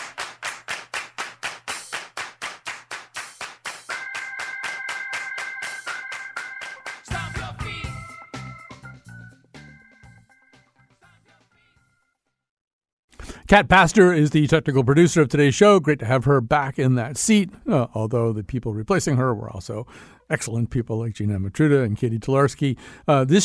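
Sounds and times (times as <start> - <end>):
hands clapping in a steady rhythm: 0.0 - 8.8
music: 1.6 - 12.5
speech: 13.5 - 23.4.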